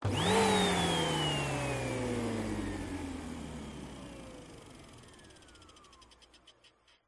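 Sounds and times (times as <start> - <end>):
household vacuum cleaner powering on and off: 0.0 - 5.6.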